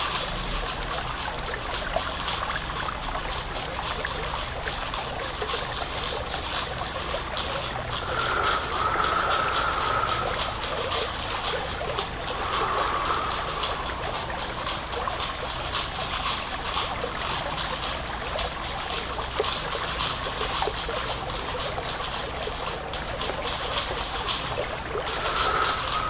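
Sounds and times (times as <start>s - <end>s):
water trickling in a steady bright hiss: 0.0s - 26.0s.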